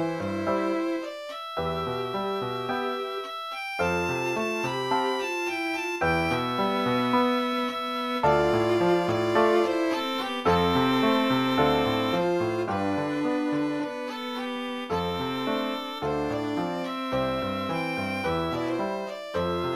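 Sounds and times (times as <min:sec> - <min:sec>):
piano trio playing: 0:00.0 - 0:19.7.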